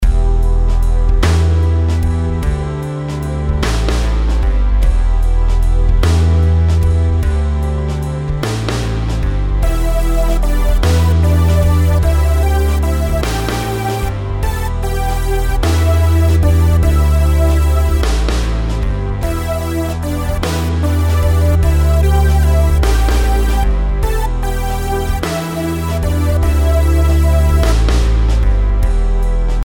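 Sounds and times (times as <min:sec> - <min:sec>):
compound melodies in E minor: 0:00.0 - 0:29.6.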